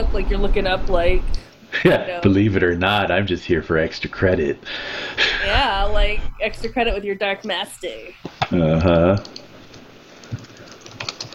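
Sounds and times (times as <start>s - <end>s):
speech: 0.0s - 9.4s
typing on a computer keyboard: 9.1s - 11.3s.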